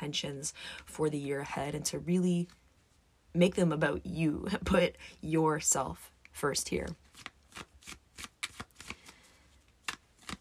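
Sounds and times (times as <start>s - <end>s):
speech: 0.0s - 2.6s, 3.3s - 8.0s
tarot cards being shuffled for a reading: 7.0s - 10.3s.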